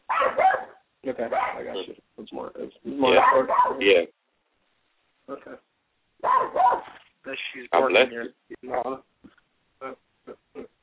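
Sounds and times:
dog barking: 0:00.1 - 0:01.8, 0:03.1 - 0:04.0, 0:06.2 - 0:07.0
speech: 0:01.1 - 0:04.2, 0:05.3 - 0:05.7, 0:06.4 - 0:09.1, 0:09.8 - 0:10.0.

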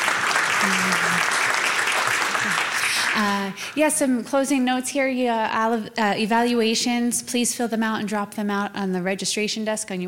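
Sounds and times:
audience applause: 0:00.0 - 0:03.8
speech: 0:00.6 - 0:01.4, 0:02.4 - 0:10.0.

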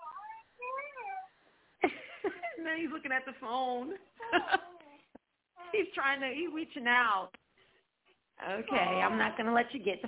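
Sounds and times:
baby cooing and babbling: 0:00.0 - 0:01.3, 0:04.7 - 0:05.8
speech: 0:02.2 - 0:04.8, 0:05.7 - 0:07.4, 0:08.4 - 0:10.0.

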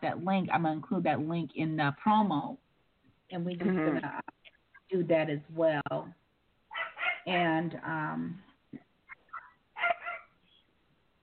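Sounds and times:
speech: 0:00.0 - 0:02.6, 0:03.3 - 0:06.2, 0:07.2 - 0:08.8
dog barking in the background at home: 0:06.7 - 0:07.3, 0:09.3 - 0:10.4.

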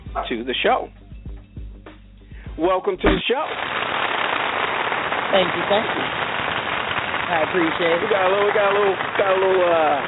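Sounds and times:
speech: 0:00.2 - 0:01.0, 0:02.6 - 0:04.0, 0:05.3 - 0:06.2, 0:07.3 - 0:10.0
fake canned applause sound effect: 0:03.2 - 0:10.0.

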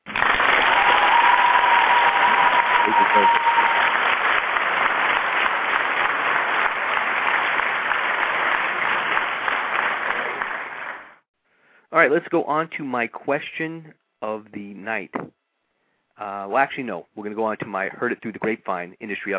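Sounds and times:
crowd applause: 0:00.0 - 0:11.2
whistle-like tone: 0:02.4 - 0:03.9
speech: 0:02.9 - 0:03.4, 0:12.0 - 0:15.4, 0:16.2 - 0:19.3.

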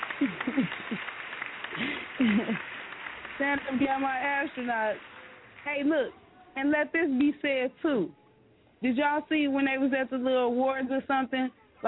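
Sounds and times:
audience applause: 0:00.0 - 0:05.8
speech: 0:00.2 - 0:02.8, 0:03.4 - 0:08.2, 0:08.8 - 0:11.8.

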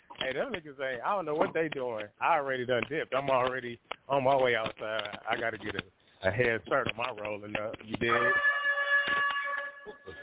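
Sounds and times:
speech: 0:00.3 - 0:08.5
buzzer signalling a break: 0:08.1 - 0:10.2.

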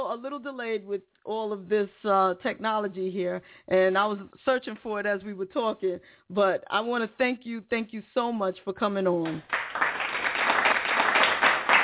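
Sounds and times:
speech: 0:00.2 - 0:10.0
hand claps as a greeting: 0:09.2 - 0:11.8.

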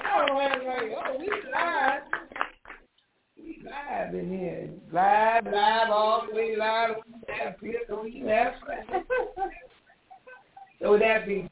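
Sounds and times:
people clapping in studio: 0:00.0 - 0:02.9
speech: 0:04.0 - 0:09.6, 0:10.8 - 0:11.5
laughter: 0:07.3 - 0:10.8.

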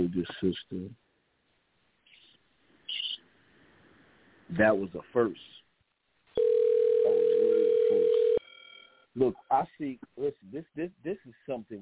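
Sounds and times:
speech: 0:00.1 - 0:01.1, 0:04.5 - 0:05.6, 0:09.2 - 0:11.8
telephone dial tone after disconnected call: 0:06.4 - 0:08.5.

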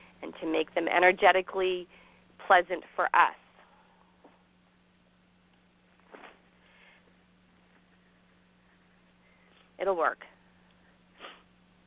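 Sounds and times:
speech: 0:00.2 - 0:03.4, 0:09.8 - 0:10.3
person sniffing: 0:11.2 - 0:11.5.

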